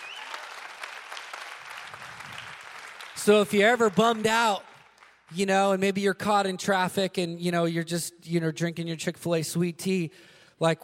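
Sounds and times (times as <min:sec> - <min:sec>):
audience applause: 0:00.0 - 0:05.3
speech: 0:03.2 - 0:04.7, 0:05.3 - 0:10.8.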